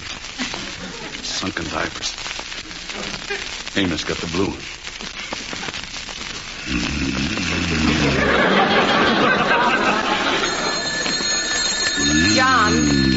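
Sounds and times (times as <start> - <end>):
laughter: 0.4 - 1.2, 7.7 - 11.4
speech: 1.4 - 2.3, 3.0 - 5.2, 6.7 - 8.6, 12.1 - 13.1
telephone ringing at night: 8.2 - 13.1.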